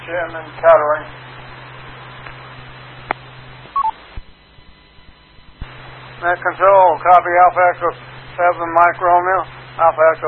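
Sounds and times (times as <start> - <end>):
hissy band-limited radio channel: 0.0 - 10.2
low steady hum: 0.0 - 10.2
static crackles: 0.0 - 10.2
speech: 0.1 - 1.4, 6.2 - 10.2
two-part electronic beep on a radio channel: 3.8 - 4.0.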